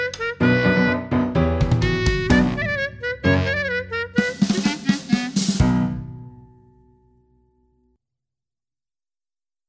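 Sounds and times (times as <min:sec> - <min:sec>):
klezmer music: 0:00.0 - 0:07.3.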